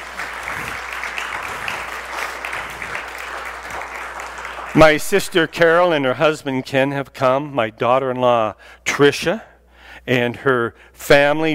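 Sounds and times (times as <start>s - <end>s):
crowd applause: 0.0s - 5.8s
speech: 4.8s - 11.5s.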